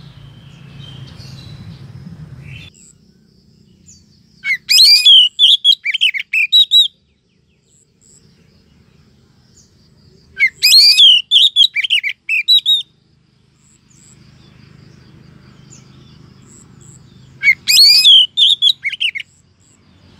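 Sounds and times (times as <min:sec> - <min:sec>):
Oriental magpie-robin rising whistle: 0:04.4 - 0:07.0, 0:10.4 - 0:12.9, 0:17.4 - 0:19.3.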